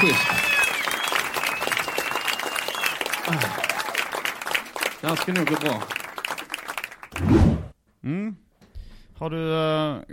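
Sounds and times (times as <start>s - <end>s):
short round of applause: 0.0s - 7.3s
speech: 3.3s - 3.6s, 5.0s - 6.0s, 9.2s - 10.1s.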